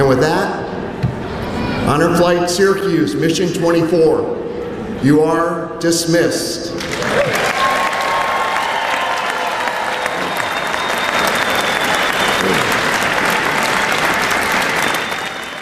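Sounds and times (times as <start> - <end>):
speech: 0.1 - 0.7, 1.9 - 7.4
crowd applause welcoming home Honor Flight Syracuse veterans: 6.8 - 15.6.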